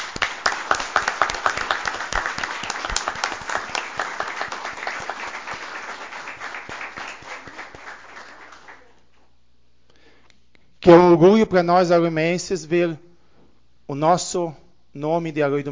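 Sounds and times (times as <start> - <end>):
crowd applause: 0.0 - 9.0
speech: 10.8 - 13.1, 13.9 - 15.7.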